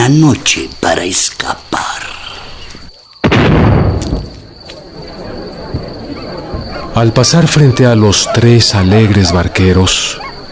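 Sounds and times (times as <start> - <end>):
speech: 0.1 - 2.1, 7.0 - 10.3
cannon firing at night: 3.2 - 4.6
fainter cannon thuds and pops: 3.2 - 4.8, 5.7 - 6.8.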